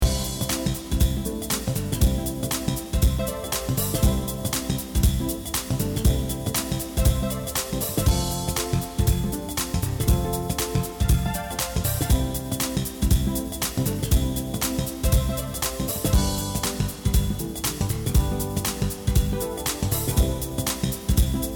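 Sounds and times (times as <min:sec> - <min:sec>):
soft background music: 0:00.0 - 0:21.5.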